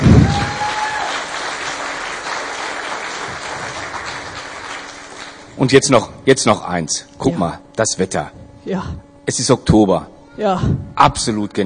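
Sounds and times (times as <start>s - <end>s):
applause: 0.0s - 5.5s
speech: 5.6s - 11.6s.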